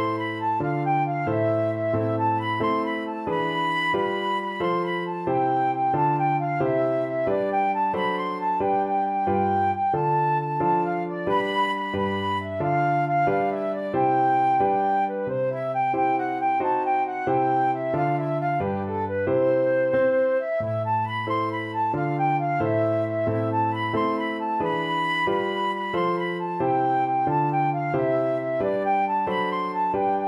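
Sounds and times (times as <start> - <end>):
flute melody: 0.0 - 30.2.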